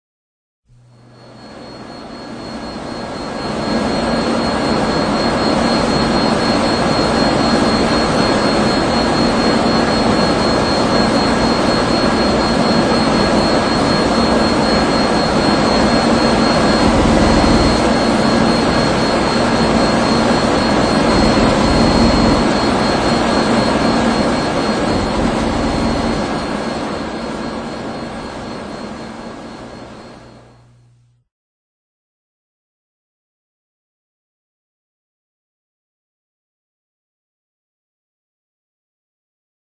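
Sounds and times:
industrial mechanical noise: 0:00.7 - 0:31.2.

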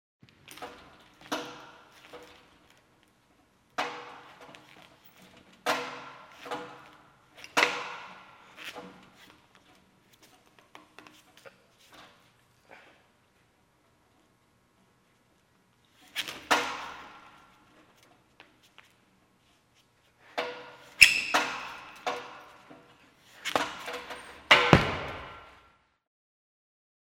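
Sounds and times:
gymnastics parallel bars exercise: 0:00.2 - 0:26.0.

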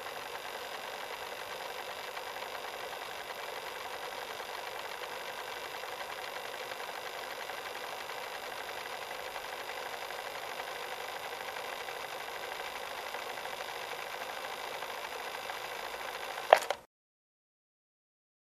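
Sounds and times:
cassette deck rewinding: 0:00.0 - 0:16.8
cassette deck opening and closing: 0:16.5 - 0:16.8.

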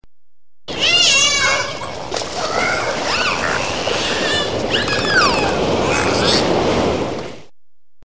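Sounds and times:
group of dolphins playing: 0:00.7 - 0:07.0.

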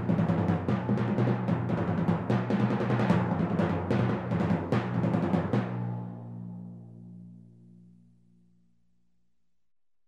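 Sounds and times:
timpani: 0:00.0 - 0:06.8.

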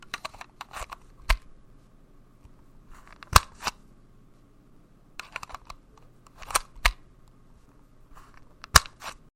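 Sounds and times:
Game Boy Advance cartridge inserted and removed from console: 0:00.0 - 0:01.5, 0:03.1 - 0:03.8, 0:05.2 - 0:07.0, 0:08.6 - 0:09.2.

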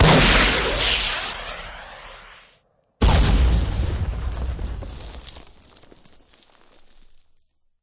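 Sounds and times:
firework rocket launch: 0:00.0 - 0:04.8.

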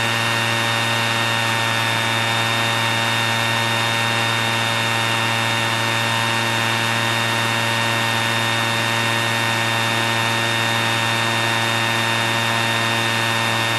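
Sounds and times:
garden vacuum running: 0:00.0 - 0:13.7.

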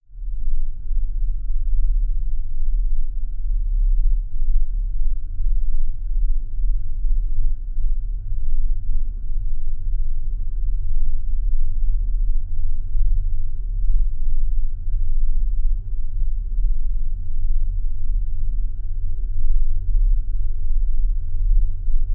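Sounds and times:
low quiet barely audible sound: 0:00.0 - 0:22.1.

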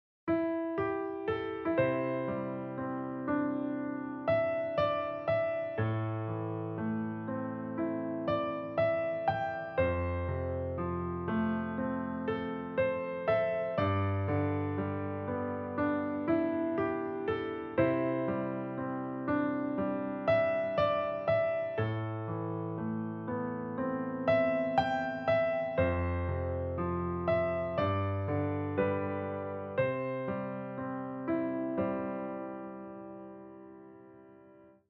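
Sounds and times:
warm soothing relaxing short piano melody: 0:00.3 - 0:34.8.

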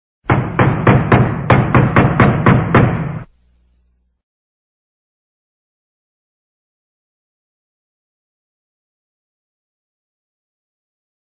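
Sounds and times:
knocking on a door: 0:00.2 - 0:03.3.

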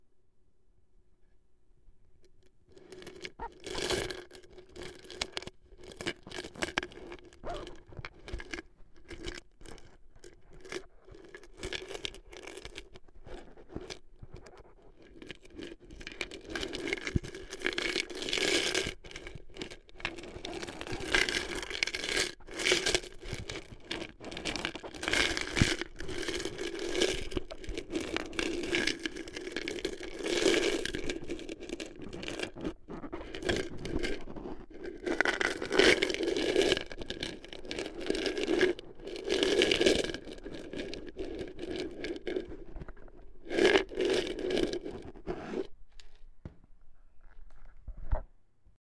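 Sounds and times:
coins rattling in a piggy bank: 0:02.8 - 0:13.8, 0:14.5 - 0:42.7, 0:43.4 - 0:45.7.

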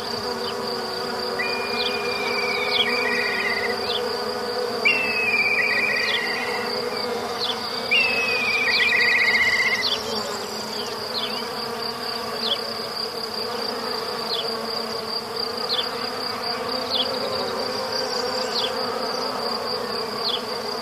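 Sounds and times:
bee buzzing as a steady low drone in a forest: 0:00.0 - 0:20.7.

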